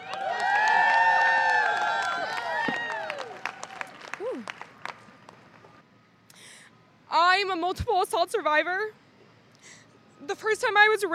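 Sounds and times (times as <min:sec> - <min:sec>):
crowd shouts and whoops: 0:00.0 - 0:04.5
audience applause: 0:00.0 - 0:05.5
speech: 0:07.7 - 0:09.0, 0:10.3 - 0:11.1.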